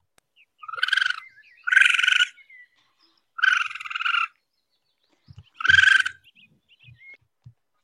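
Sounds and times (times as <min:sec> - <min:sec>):
raccoon call: 0:00.6 - 0:04.4, 0:05.5 - 0:06.3.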